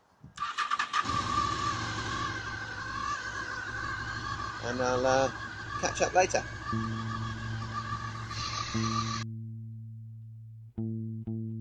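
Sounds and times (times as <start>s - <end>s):
motorbike engine starting and idling: 0.4s - 9.2s
speech: 4.7s - 7.1s, 8.7s - 8.9s.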